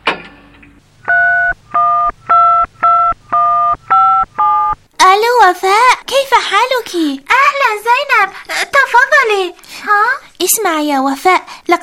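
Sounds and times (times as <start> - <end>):
telephone being dialled: 1.1 - 4.8
speech: 5.5 - 11.8.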